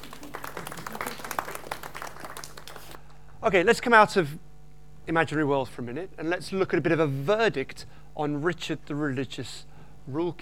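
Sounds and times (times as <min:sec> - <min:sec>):
small audience applauding: 0:00.0 - 0:03.3
faint hum: 0:00.0 - 0:10.3
speech: 0:03.4 - 0:04.5, 0:05.1 - 0:10.3.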